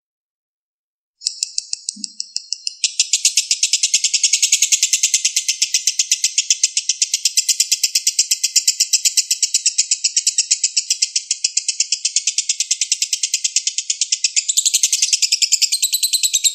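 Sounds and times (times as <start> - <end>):
Oriental magpie-robin singing fast high chirps and trills: 1.2 - 16.5.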